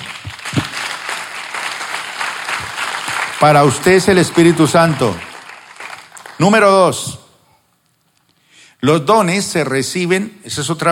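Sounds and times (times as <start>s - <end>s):
audience applause: 0.0s - 6.7s
speech: 3.4s - 5.3s, 6.4s - 7.2s, 8.8s - 10.9s.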